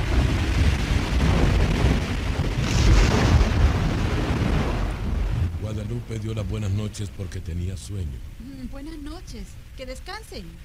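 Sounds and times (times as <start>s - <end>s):
thunder in a raging storm: 0.0s - 6.2s
speech: 6.2s - 10.6s.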